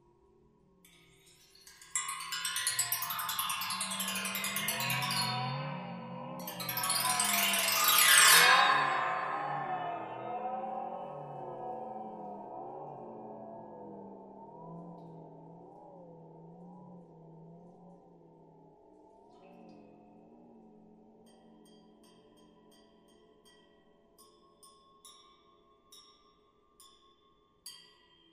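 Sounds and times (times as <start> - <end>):
waterphone with wire: 0.9 - 13.4, 19.4 - 28.3.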